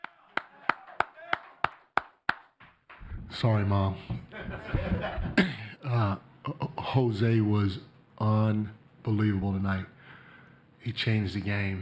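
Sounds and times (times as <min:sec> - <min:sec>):
one person clapping hands: 0:00.0 - 0:03.1
speech: 0:03.3 - 0:10.0, 0:10.8 - 0:11.8
laughter: 0:04.1 - 0:05.7.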